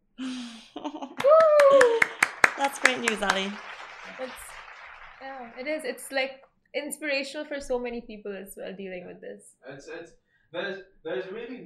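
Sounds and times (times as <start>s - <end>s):
laughter: 0.2s - 4.8s, 10.6s - 11.6s
applause sound effect: 1.2s - 6.2s
speech: 2.6s - 4.5s, 5.2s - 11.6s.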